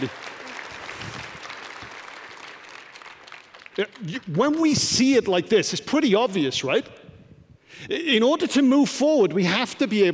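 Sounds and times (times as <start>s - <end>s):
speech: 0.0s - 0.2s, 3.8s - 7.0s, 7.7s - 10.1s
audience applause: 0.0s - 4.3s.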